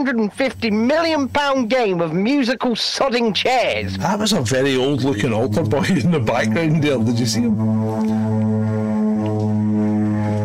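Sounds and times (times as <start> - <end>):
speech: 0.0 - 8.7
light airplanes flying overhead: 3.8 - 10.4.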